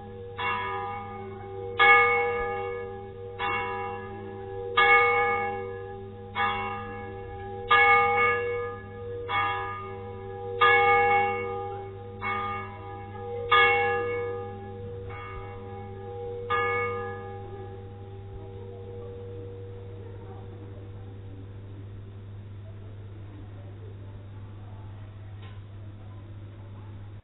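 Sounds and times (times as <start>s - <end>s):
bell: 0.0s - 21.2s.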